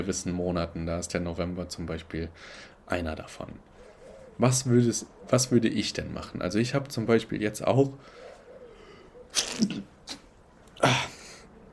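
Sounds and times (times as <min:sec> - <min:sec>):
speech: 0:00.0 - 0:03.7, 0:04.4 - 0:08.3, 0:09.3 - 0:09.9
person sneezing: 0:09.3 - 0:11.4.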